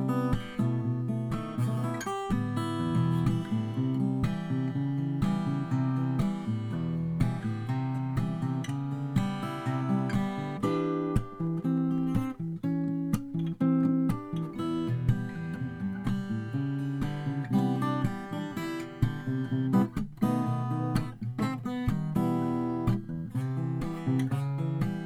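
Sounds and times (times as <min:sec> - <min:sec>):
Taylor 612ce guitar with red finish over maple: 0:00.0 - 0:25.0.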